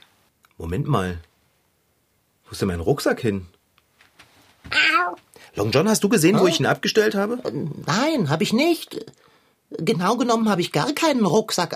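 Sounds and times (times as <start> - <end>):
speech: 0.6 - 1.3, 2.5 - 3.6, 5.0 - 11.7
tomcat meowing: 4.7 - 5.2, 6.3 - 6.7.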